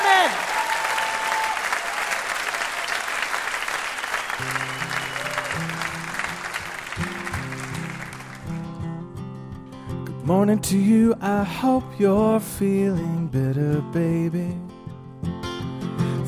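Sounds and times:
huge round of applause: 0.0 - 8.8
speech: 10.3 - 14.7.

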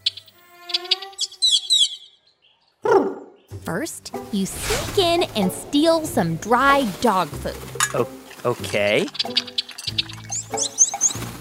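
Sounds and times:
Carib grackle calls: 0.0 - 3.5, 7.4 - 11.3
speech: 3.7 - 9.6.

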